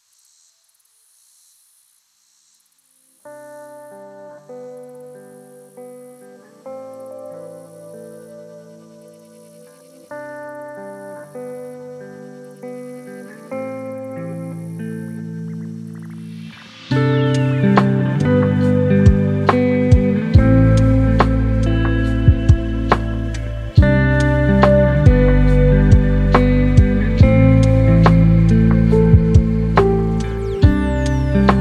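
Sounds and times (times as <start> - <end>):
lofi hip hop: 16.9 - 31.5.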